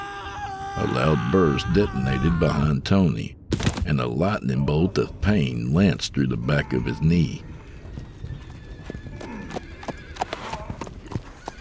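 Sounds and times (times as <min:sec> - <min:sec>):
speech: 0:00.8 - 0:07.5
thundering horses galloping: 0:06.6 - 0:11.5.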